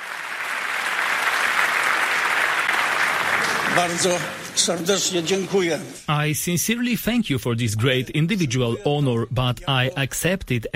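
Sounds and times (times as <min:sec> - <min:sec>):
standing ovation applause for leader of the Polish democratic opposition arriving on stage: 0:00.0 - 0:05.7
speech: 0:03.8 - 0:10.7.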